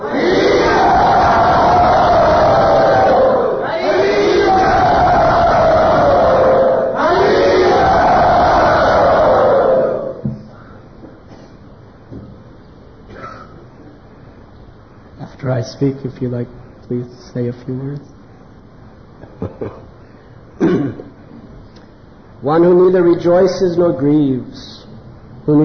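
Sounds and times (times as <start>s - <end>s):
crowd loudly chanting in welcome: 0.0s - 10.2s
speech: 15.8s - 18.2s, 19.4s - 19.9s, 22.4s - 24.7s, 25.5s - 25.6s.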